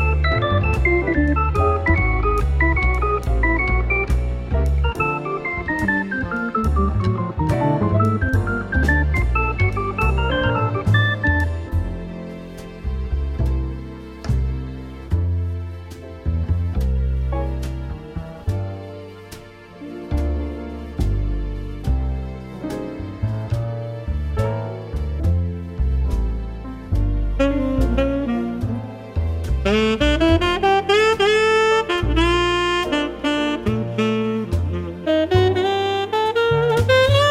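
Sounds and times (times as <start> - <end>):
relaxing piano music on radio: 0.0 - 37.2.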